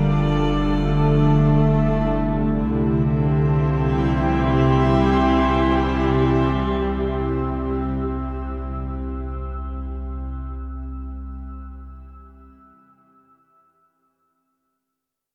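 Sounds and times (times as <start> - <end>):
viola playing: 0.0 - 11.6.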